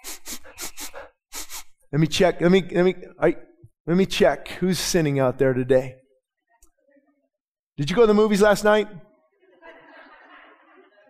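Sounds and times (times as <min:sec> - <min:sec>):
person making exaggerated sniffs: 0:00.0 - 0:01.9
speech: 0:01.9 - 0:06.0, 0:07.8 - 0:09.1
laughter: 0:09.4 - 0:11.0.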